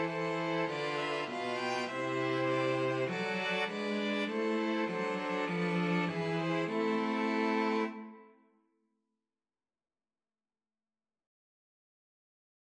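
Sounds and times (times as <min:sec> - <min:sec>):
string quartet playing a national anthem: 0:00.0 - 0:08.2.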